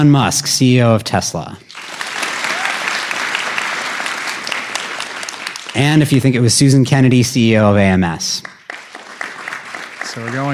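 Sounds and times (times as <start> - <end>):
speech: 0.0 - 1.7, 5.8 - 8.5, 10.1 - 10.5
audience clapping to vote: 1.7 - 6.4, 8.3 - 10.5.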